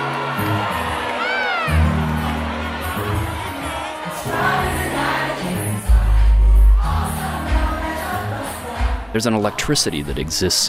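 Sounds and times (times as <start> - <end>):
party crowd cheering and whooping: 0.0 - 9.8
thumping music: 4.2 - 10.5
speech: 9.2 - 10.6.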